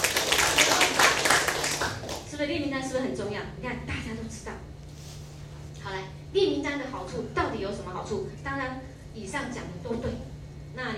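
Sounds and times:
audience clapping: 0.0s - 2.3s
speech: 3.0s - 4.6s, 5.9s - 10.9s.

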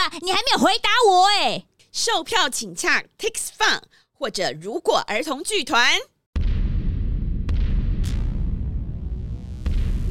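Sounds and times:
speech: 0.0s - 6.1s
explosion sound effect: 6.4s - 10.0s.

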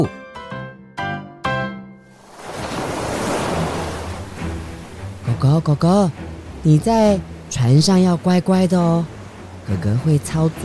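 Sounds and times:
ocean waves: 2.1s - 10.6s
speech: 5.4s - 10.6s.

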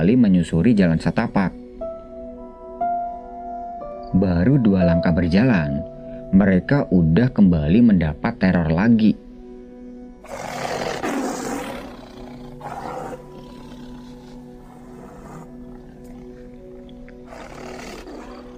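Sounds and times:
speech: 0.0s - 1.6s, 4.1s - 9.2s
tiger roaring: 10.2s - 18.5s.

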